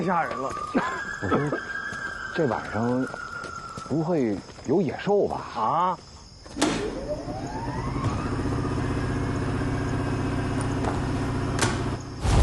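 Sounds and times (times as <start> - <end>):
speech: 0.0 - 1.8, 2.4 - 3.2, 3.9 - 8.1
power generator starting up: 6.5 - 12.3.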